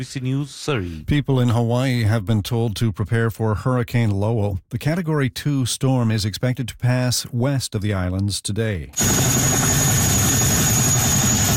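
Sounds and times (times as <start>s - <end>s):
speech: 0.0s - 9.8s
National Guard helicopter delivering troops and supplies in Hawaii: 9.0s - 11.5s.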